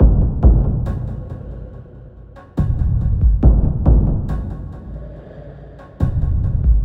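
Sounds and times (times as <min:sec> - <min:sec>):
slow motion beat loops: 0:00.0 - 0:01.3, 0:02.6 - 0:04.7, 0:06.0 - 0:06.8.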